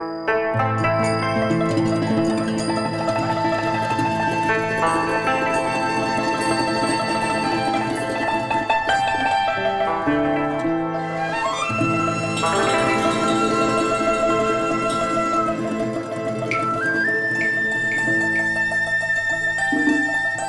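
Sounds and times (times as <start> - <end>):
traditional Chinese music: 0.0 - 20.4.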